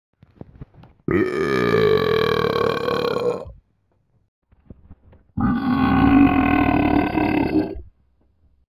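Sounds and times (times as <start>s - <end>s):
person burping: 1.1s - 3.6s, 5.4s - 7.9s.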